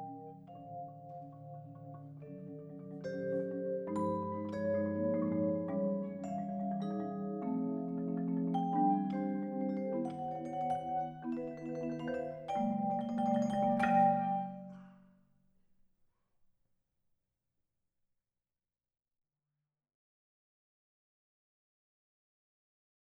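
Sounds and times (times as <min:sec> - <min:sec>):
four mallets playing: 0:00.0 - 0:15.0.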